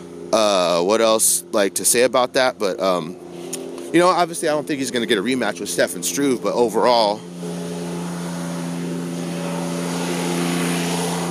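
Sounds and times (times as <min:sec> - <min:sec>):
tractor engine droning: 0:00.0 - 0:11.2
speech: 0:00.3 - 0:03.3, 0:03.9 - 0:07.4.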